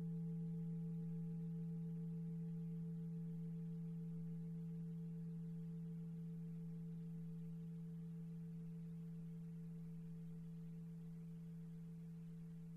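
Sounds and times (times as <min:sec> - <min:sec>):
brass singing bowl: 0:00.0 - 0:12.6.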